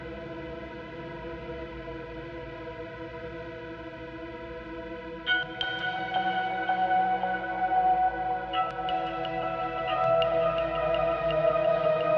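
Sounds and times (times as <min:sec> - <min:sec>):
chords without lead: 0:05.3 - 0:12.1.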